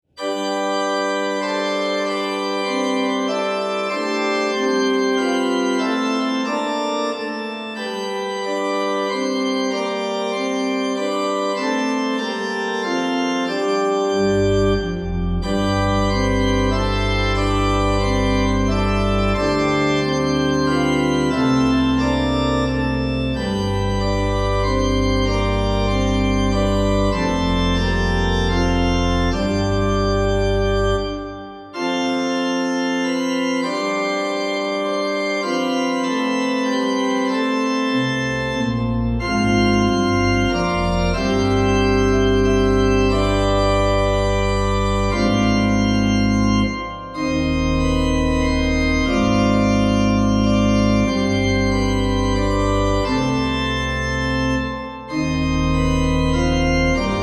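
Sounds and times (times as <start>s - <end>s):
organ playing: 0.0s - 57.2s.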